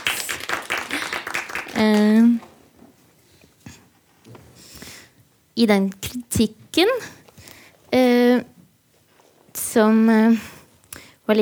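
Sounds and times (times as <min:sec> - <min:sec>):
audience applause: 0:00.0 - 0:02.4
speech: 0:01.8 - 0:02.5, 0:05.6 - 0:07.2, 0:09.8 - 0:10.6.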